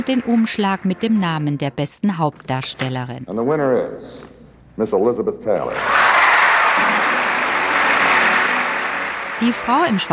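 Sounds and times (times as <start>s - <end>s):
speech: 0.0s - 6.1s, 9.4s - 10.1s
audience applause at an award ceremony: 6.0s - 10.1s.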